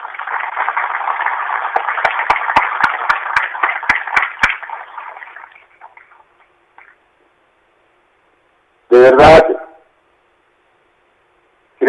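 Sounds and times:
audience applause: 0.0 - 6.1.

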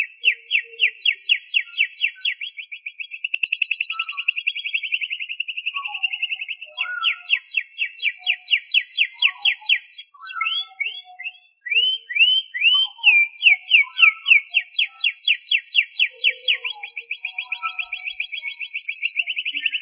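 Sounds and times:
canary song: 0.0 - 19.8.

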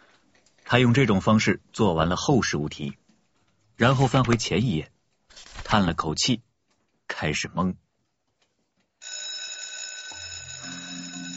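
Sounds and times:
speech: 0.7 - 3.0, 3.8 - 6.5, 7.2 - 7.8
exam bell ringing: 9.0 - 11.3.

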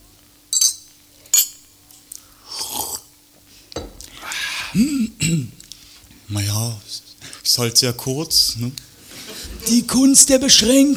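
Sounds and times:
glasses clinking in a toast: 0.0 - 3.2, 3.8 - 5.4, 9.1 - 10.9
laughter: 4.3 - 5.5, 7.2 - 10.9
speech: 4.8 - 5.6, 6.3 - 8.9, 9.6 - 10.9.

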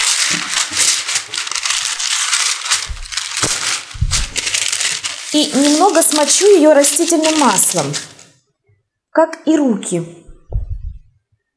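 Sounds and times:
baking paper being handled: 0.0 - 8.4
speech: 5.3 - 8.2, 9.2 - 10.3
soft low thumps: 10.3 - 11.2.

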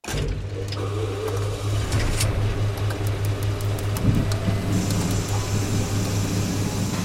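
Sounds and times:
all-terrain vehicle low electric hum: 0.3 - 7.0
faint clicks and ticks: 2.0 - 5.4.

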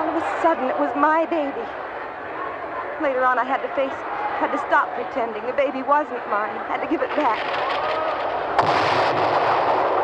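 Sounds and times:
speech: 0.4 - 1.9, 3.0 - 8.1
fireworks bursting: 7.2 - 10.0
sharp loud bang: 8.6 - 10.0.

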